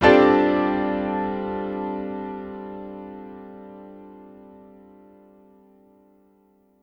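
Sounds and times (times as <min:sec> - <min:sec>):
stacked piano chords in D minor: 0:00.0 - 0:06.2.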